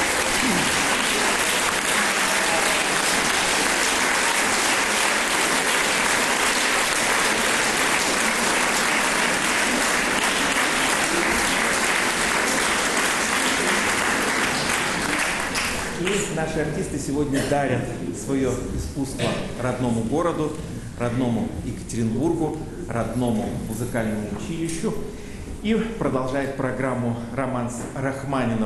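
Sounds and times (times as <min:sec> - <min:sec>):
audience applause in concert hall: 0:00.0 - 0:16.3
speech: 0:16.4 - 0:28.6.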